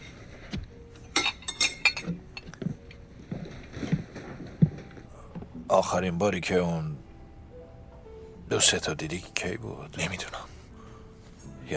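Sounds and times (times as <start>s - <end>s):
ceramic plates being picked up from a table and stacked: 1.0s - 3.0s
speech: 5.7s - 7.0s, 8.5s - 10.5s.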